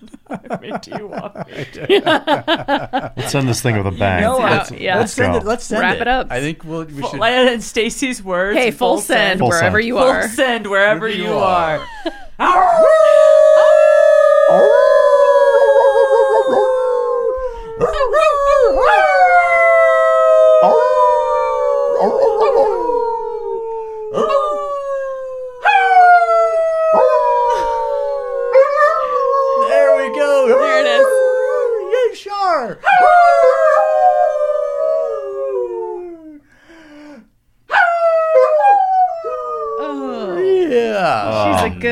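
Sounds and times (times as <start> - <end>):
laughter: 0.0 - 6.5, 10.9 - 13.2, 27.4 - 28.1, 39.8 - 41.9
speech: 0.3 - 13.2
dog howling: 12.4 - 36.4, 37.7 - 40.7.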